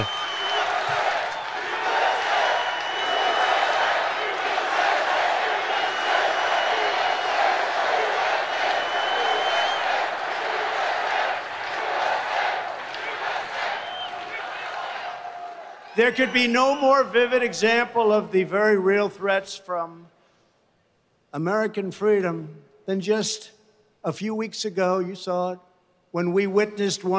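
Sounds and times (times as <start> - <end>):
small crowd cheering and shouting: 0.0 - 16.4
speech: 16.0 - 20.2, 21.3 - 27.1.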